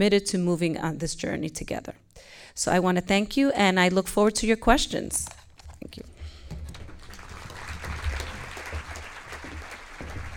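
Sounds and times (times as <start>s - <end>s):
speech: 0.0s - 6.1s
audience applause: 6.8s - 10.3s.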